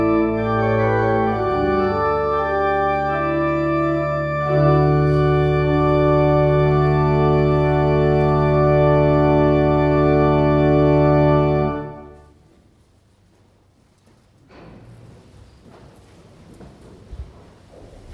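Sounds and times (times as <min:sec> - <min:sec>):
organ postlude: 0:00.0 - 0:12.4.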